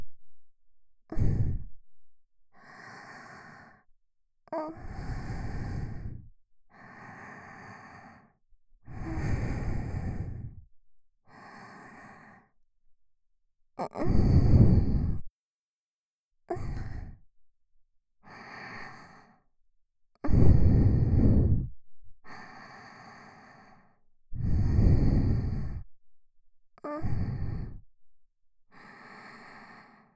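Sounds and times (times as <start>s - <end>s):
sweet breathing loop: 1.1s - 1.8s, 2.5s - 3.9s, 4.5s - 10.7s, 11.3s - 12.6s, 13.9s - 15.3s, 16.6s - 17.2s, 18.2s - 19.5s, 20.2s - 25.9s, 26.8s - 28.0s, 28.7s - 30.1s.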